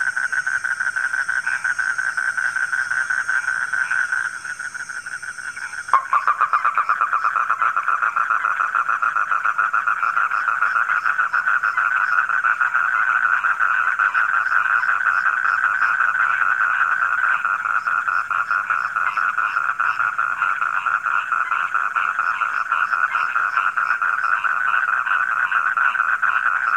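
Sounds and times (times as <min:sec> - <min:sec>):
frog chorus croaking: 0:00.0 - 0:26.7.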